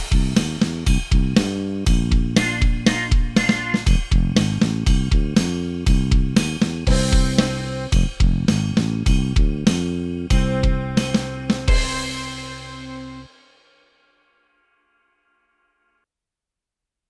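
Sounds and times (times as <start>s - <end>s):
rock rhythm track: 0.0s - 13.4s.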